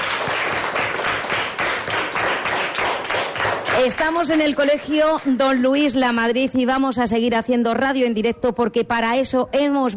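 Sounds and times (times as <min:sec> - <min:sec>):
audience applause: 0:00.0 - 0:04.2
speech: 0:03.8 - 0:09.9.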